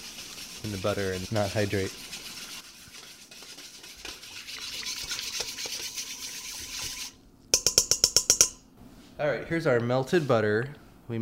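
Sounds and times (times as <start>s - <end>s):
whisk stirring a yeast mixture in a bowl for pretzel dough: 0.0s - 7.2s
speech: 0.6s - 2.2s, 9.2s - 11.1s.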